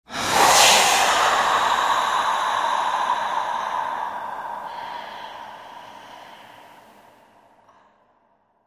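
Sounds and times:
big air hiss release: 0.1s - 6.9s.

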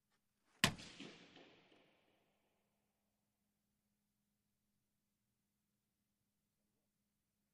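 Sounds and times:
hockey puck hits: 0.6s - 2.1s.

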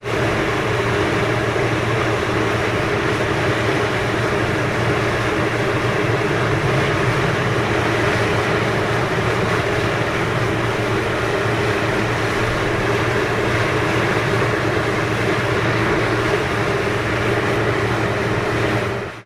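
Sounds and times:
large industrial fans: 0.0s - 19.2s.

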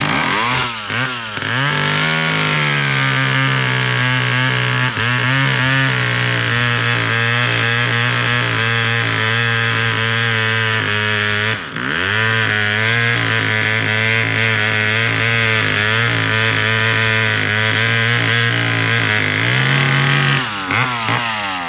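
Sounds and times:
chainsaw cutting a tree: 0.0s - 21.6s.

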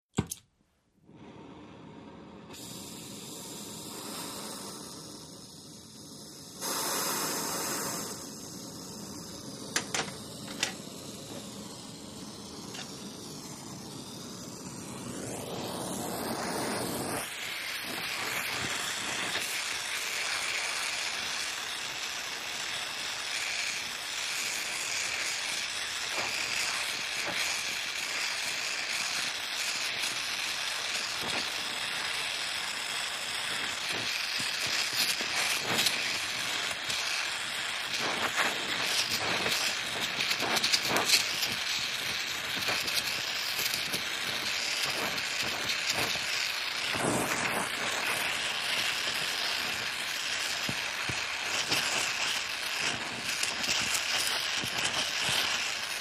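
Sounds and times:
oxygen-acetylene torch igniting: 0.2s - 55.9s
oxygen-acetylene welding: 1.1s - 55.9s.

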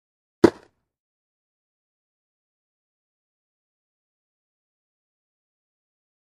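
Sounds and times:
baseball helmet toss: 0.4s - 0.6s.

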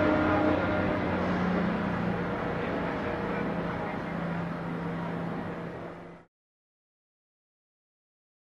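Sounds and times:
Geneva train station with light activity: 0.0s - 6.3s.

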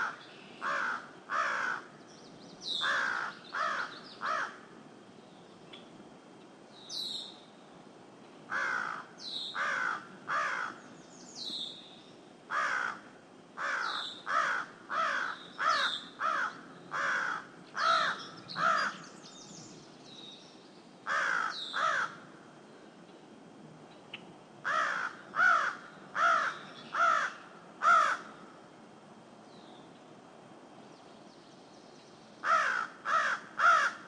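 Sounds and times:
crow cawing: 0.0s - 1.9s, 2.8s - 4.7s, 8.5s - 10.8s, 12.5s - 19.0s, 21.1s - 22.3s, 24.6s - 28.5s, 32.4s - 34.0s.

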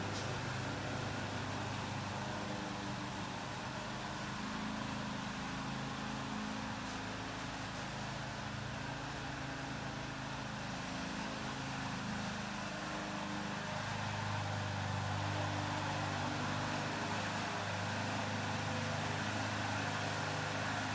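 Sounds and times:
gas lawn mower starting and running: 0.0s - 20.9s.

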